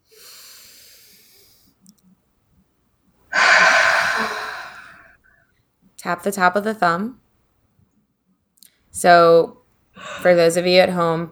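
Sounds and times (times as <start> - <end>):
deep breathing during a guided tapping and self-forgiveness exercise: 3.4 - 5.0
speech: 6.1 - 7.2, 9.0 - 11.2.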